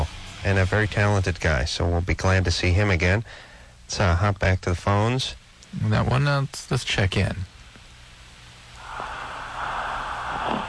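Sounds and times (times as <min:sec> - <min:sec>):
faint low hum: 0:00.0 - 0:10.6
speech: 0:00.4 - 0:07.5
loud rasping snore: 0:08.8 - 0:10.6.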